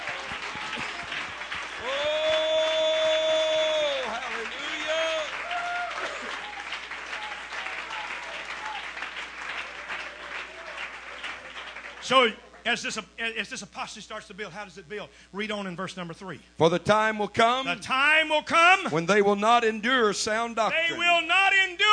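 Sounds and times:
people clapping hands: 0:00.0 - 0:12.9
speech: 0:12.1 - 0:21.8.

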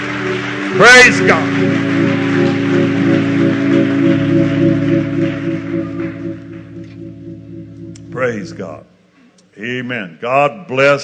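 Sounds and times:
audience clapping hands: 0:00.0 - 0:08.6
speech: 0:00.7 - 0:01.9, 0:08.2 - 0:08.9, 0:09.6 - 0:11.0.

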